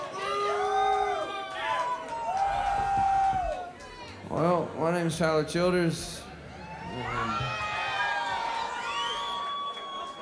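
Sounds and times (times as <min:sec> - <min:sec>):
crowd applauding: 0:00.0 - 0:04.2, 0:06.7 - 0:10.1
speech: 0:04.4 - 0:06.2
rising and falling whistles: 0:08.9 - 0:10.1.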